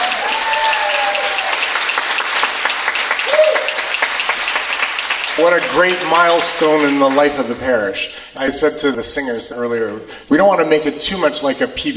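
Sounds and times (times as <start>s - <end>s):
audience applause: 0.0s - 7.3s
speech: 5.4s - 11.9s.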